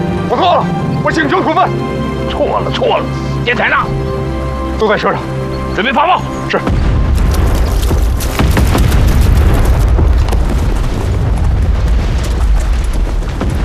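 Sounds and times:
speech: 0:00.3 - 0:04.1, 0:04.8 - 0:06.9
artillery fire from the north: 0:06.7 - 0:13.6.

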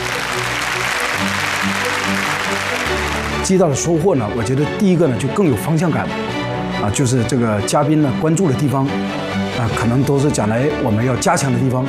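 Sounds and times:
crowd applause: 0:00.0 - 0:04.0
speech: 0:03.5 - 0:11.8.

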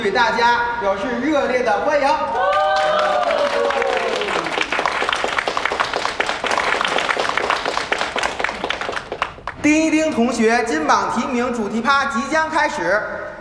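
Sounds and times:
speech: 0:00.0 - 0:04.0, 0:09.6 - 0:13.2
voiced cheer: 0:02.3 - 0:04.8
crowd applauding: 0:02.4 - 0:09.6.

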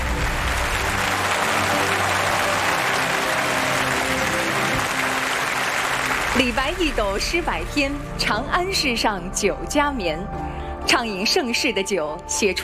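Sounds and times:
warm audience applause: 0:00.0 - 0:07.2
speech: 0:06.4 - 0:12.6.

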